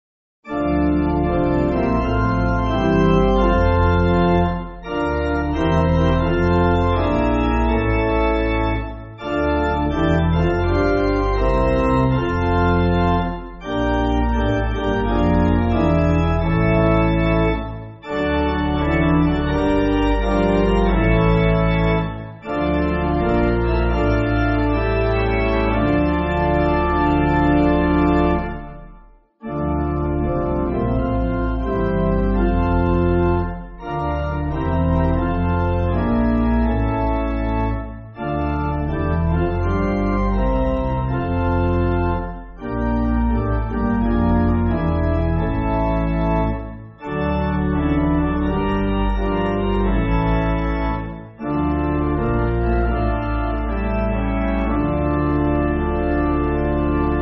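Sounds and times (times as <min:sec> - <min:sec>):
pipe organ backing for churches: 0:00.4 - 0:57.2.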